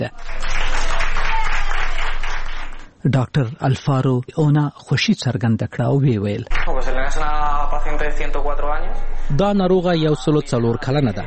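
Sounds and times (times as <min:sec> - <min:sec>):
doctors and nurses in a Madrid hospital clapping for a recovered 104-year-old patient: 0:00.0 - 0:02.9, 0:06.5 - 0:07.1
speech: 0:03.0 - 0:11.2.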